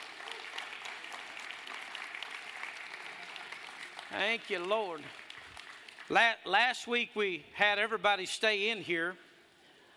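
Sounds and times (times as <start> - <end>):
audience round of applause: 0.0 - 6.2
speech: 4.1 - 5.2, 6.1 - 9.2.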